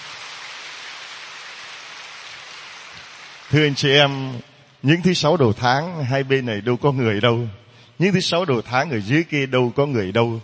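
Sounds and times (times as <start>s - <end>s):
warm round of applause: 0.0s - 4.3s
speech: 3.5s - 10.4s.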